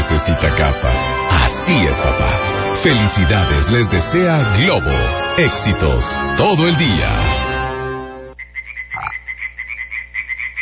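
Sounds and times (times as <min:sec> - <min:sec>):
sustained musical tone: 0:00.0 - 0:08.4
speech: 0:01.8 - 0:07.5
frog croaking: 0:08.4 - 0:10.6.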